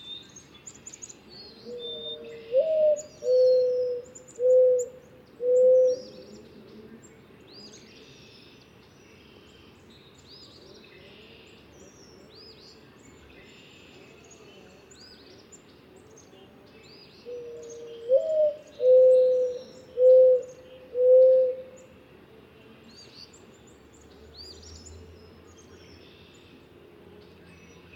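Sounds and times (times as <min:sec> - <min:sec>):
mourning dove cooing: 0:01.2 - 0:06.9, 0:17.2 - 0:22.0.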